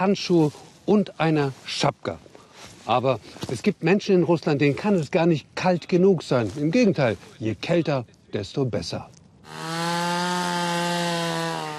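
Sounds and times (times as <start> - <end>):
speech: 0.0 - 2.3, 2.9 - 9.6
chainsaw cutting through ice: 9.5 - 11.7.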